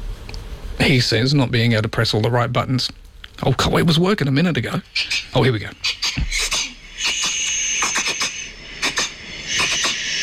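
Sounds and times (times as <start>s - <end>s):
speech: 0.8s - 6.0s
cat reverse sneezing: 5.0s - 10.2s.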